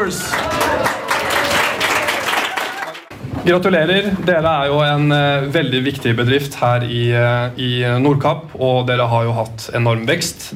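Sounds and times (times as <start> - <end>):
speech: 0.0 - 0.6, 3.4 - 10.5
audience applauding North Cape Tours in Nordkapp: 0.0 - 3.1.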